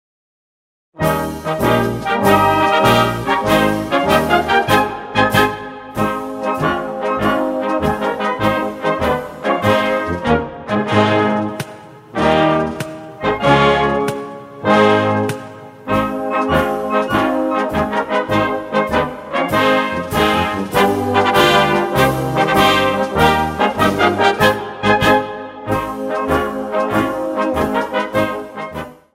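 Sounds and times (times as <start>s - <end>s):
march music: 1.0s - 29.1s.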